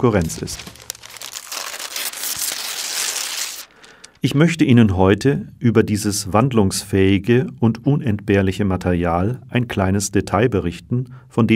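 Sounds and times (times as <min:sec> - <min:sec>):
speech: 0:00.0 - 0:00.8, 0:04.2 - 0:11.5
paper crinkling and rustling: 0:00.0 - 0:04.2.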